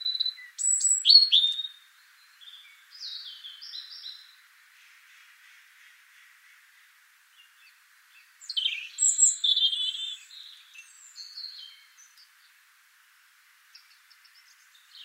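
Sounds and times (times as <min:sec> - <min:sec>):
European robin singing: 0:00.0 - 0:04.4, 0:07.3 - 0:12.6, 0:13.7 - 0:15.0.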